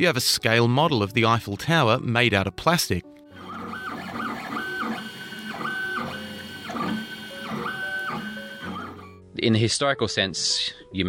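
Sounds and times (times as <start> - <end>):
speech: 0.0 - 3.2, 9.4 - 11.0
3D printer motors humming and whining while printing: 3.4 - 9.2.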